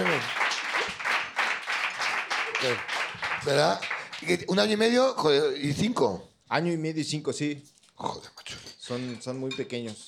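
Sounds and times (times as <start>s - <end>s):
audience applause: 0.0s - 4.4s
speech: 2.6s - 8.2s, 8.9s - 10.0s.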